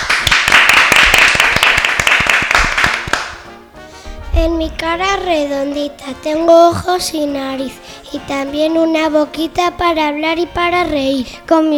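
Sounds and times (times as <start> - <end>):
audience applause: 0.0 - 3.4
speech: 4.4 - 11.7.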